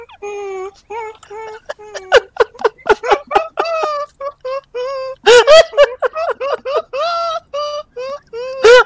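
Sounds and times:
person laughing: 0.1 - 8.8.

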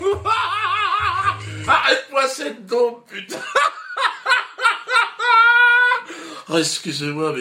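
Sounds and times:
person laughing: 0.0 - 2.1, 3.2 - 6.1.

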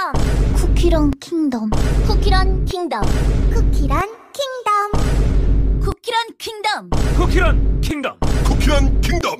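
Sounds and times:
Vine boom: 0.1 - 1.1, 1.7 - 4.0, 4.9 - 5.9, 6.9 - 9.2.

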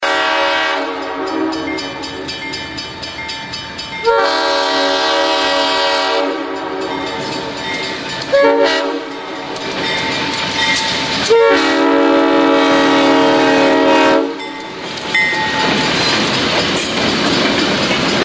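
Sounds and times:
train horn: 0.0 - 2.2, 4.0 - 7.3, 8.3 - 9.3, 11.2 - 14.5
train bell: 0.0 - 18.2.

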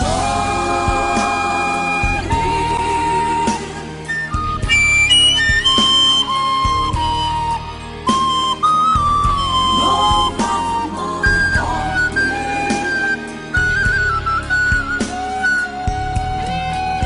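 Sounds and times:
emotional flute melody: 0.0 - 17.0.

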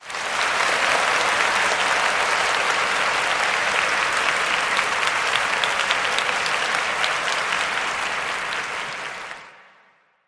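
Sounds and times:
people cheering: 0.0 - 9.6.

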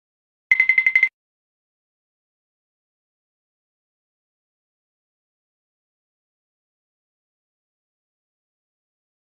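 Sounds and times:
cartoon tiptoe: 0.5 - 1.1.

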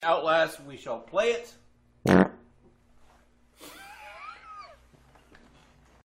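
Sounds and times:
fart: 2.0 - 2.4.

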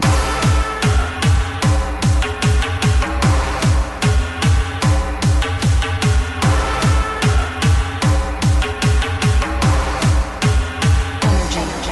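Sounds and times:
Russian hardbass music: 0.0 - 11.9.

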